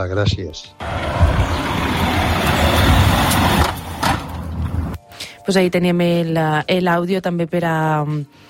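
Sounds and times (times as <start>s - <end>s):
speech: 0.0s - 1.6s, 5.5s - 8.4s
car passing in the street: 0.8s - 5.0s.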